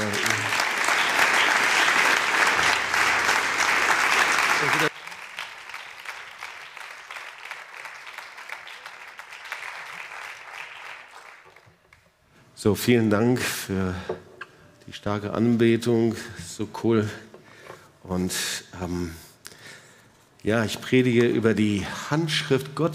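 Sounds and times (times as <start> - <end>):
audience applause: 0.0 - 11.8
speech: 12.6 - 14.2, 14.9 - 17.3, 18.1 - 19.2, 20.4 - 22.9.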